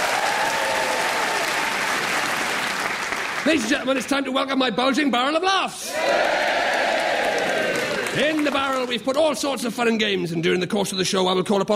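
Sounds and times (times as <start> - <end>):
audience applause for a band's performance on a comedy show: 0.0 - 4.1, 5.9 - 9.2
speech: 3.4 - 6.6, 8.2 - 11.7.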